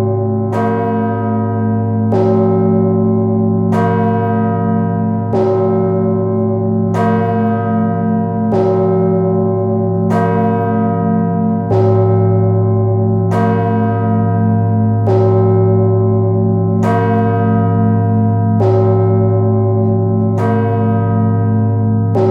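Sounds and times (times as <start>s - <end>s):
large church bell ringing: 0.0s - 22.2s.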